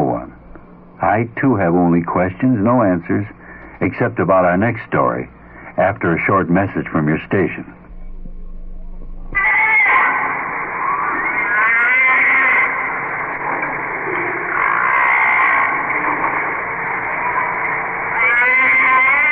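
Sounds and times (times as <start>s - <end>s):
speech: 1.0s - 7.8s
humpback whale song recorded underwater: 7.9s - 19.2s.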